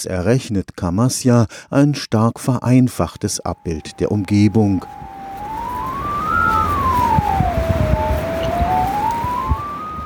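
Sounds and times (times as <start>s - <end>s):
speech: 0.0s - 5.1s
changing tones from camera navigation aid: 3.5s - 10.0s.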